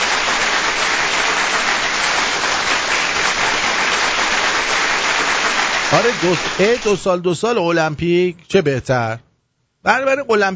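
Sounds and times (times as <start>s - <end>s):
audience applause in someone's honour: 0.0s - 7.1s
speech: 6.0s - 10.5s.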